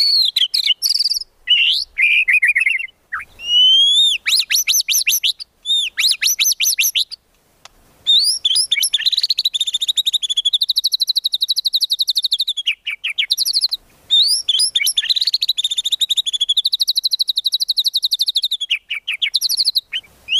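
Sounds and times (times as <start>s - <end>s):
white-rumped shama swooping whistles, chips and clicks: 0.0s - 7.1s, 8.1s - 20.3s.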